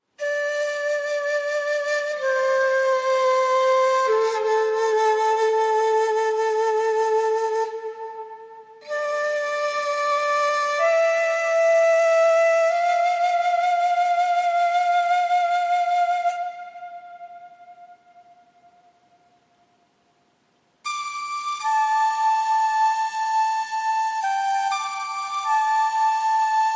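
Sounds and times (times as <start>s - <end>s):
shakuhachi bamboo flute: 0.0s - 19.4s, 20.8s - 26.7s.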